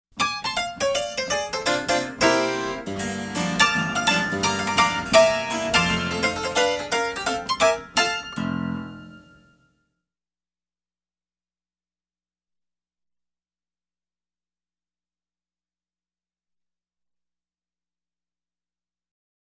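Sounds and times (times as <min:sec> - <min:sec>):
grand piano: 0:00.3 - 0:09.5.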